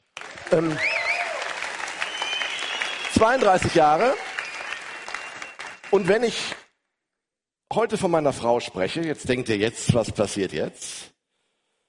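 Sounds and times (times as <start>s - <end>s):
applause: 0.0s - 6.7s
speech: 0.5s - 0.9s, 3.2s - 4.3s, 5.9s - 6.5s, 7.8s - 11.1s.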